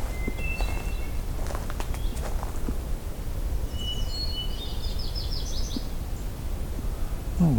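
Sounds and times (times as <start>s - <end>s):
blue-headed warbler song: 0.0s - 2.7s, 3.6s - 7.5s.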